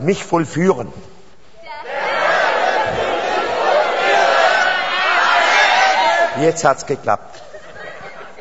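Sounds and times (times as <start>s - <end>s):
speech: 0.0s - 1.1s, 6.4s - 7.4s
audience shouting loudly: 1.7s - 6.4s
laughter: 7.3s - 8.4s.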